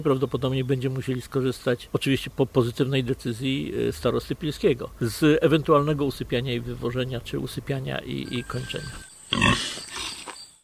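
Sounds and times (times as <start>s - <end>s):
speech: 0.0s - 9.7s
wild boar snuffling: 8.9s - 10.4s
wild boar rasping grunt: 9.3s - 10.4s.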